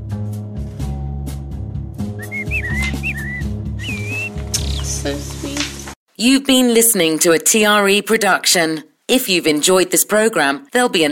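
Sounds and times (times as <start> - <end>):
blackbird singing: 2.2 - 5.0
speech: 5.0 - 5.6, 6.2 - 11.1.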